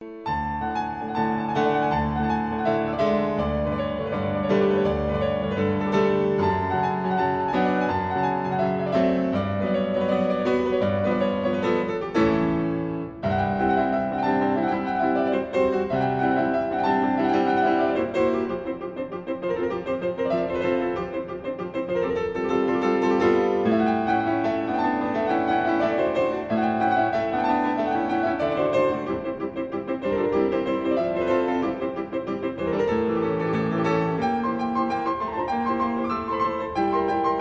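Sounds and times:
fast dance on piano: 0:00.0 - 0:37.3.

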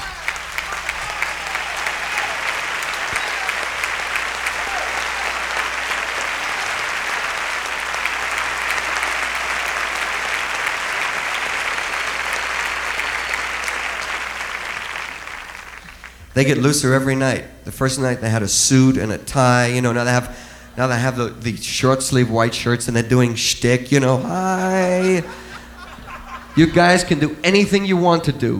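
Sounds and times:
audience applause: 0:00.0 - 0:16.7, 0:24.2 - 0:27.8
laughter: 0:00.0 - 0:17.1, 0:17.9 - 0:28.5
speech: 0:16.4 - 0:25.4, 0:26.6 - 0:28.5.

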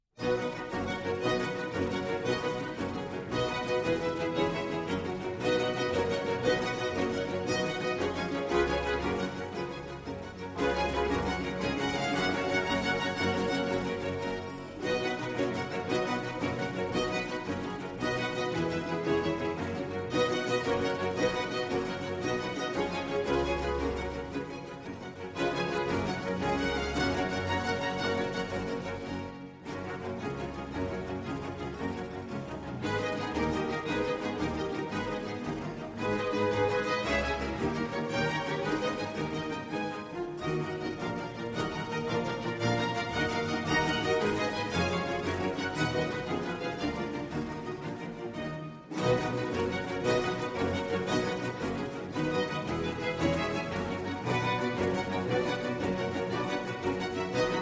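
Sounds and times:
concerto for strings allegro molto: 0:00.2 - 0:57.6.

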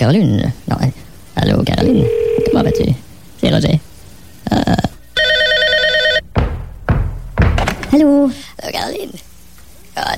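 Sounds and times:
speech: 0:00.0 - 0:03.9, 0:04.5 - 0:04.9, 0:08.0 - 0:09.3
telephone bell ringing: 0:05.2 - 0:06.2
dull thumps and knocks: 0:06.2 - 0:08.1.

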